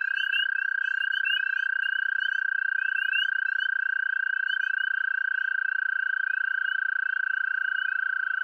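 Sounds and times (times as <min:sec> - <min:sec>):
American toads calling: 0:00.0 - 0:08.4
spring peepers calling in chorus: 0:00.0 - 0:08.4.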